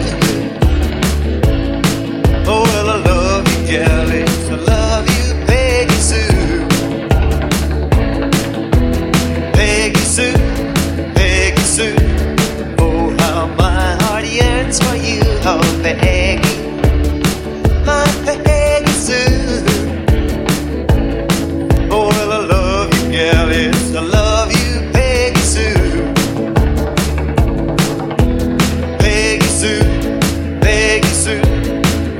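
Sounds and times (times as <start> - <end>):
funk Redrum drum machine loop at 148 BPM: 0.0 - 32.1.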